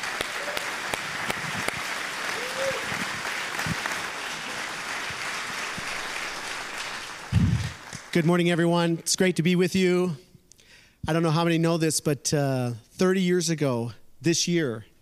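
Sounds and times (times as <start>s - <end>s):
audience applauding at a gathering: 0.0s - 8.5s
speech: 8.2s - 10.2s, 11.0s - 14.9s.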